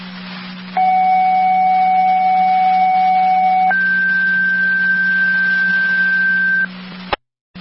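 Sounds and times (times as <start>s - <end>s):
radio dispatch paging tones: 0.8s - 6.7s.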